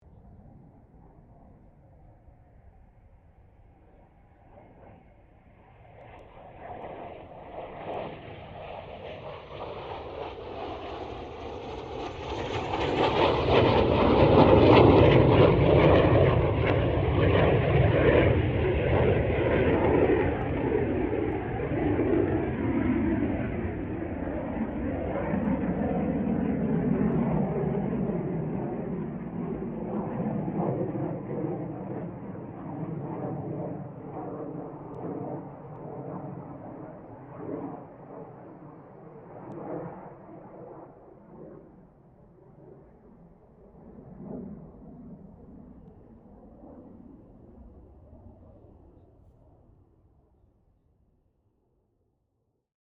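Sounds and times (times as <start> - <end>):
CA-27 Sabre jet aircraft passing: 0.1 - 50.7.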